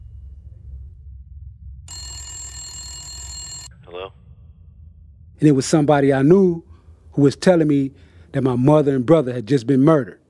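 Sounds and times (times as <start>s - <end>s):
low rumble: 0.0s - 9.6s
telephone ringing: 1.9s - 3.8s
speech: 5.4s - 10.2s.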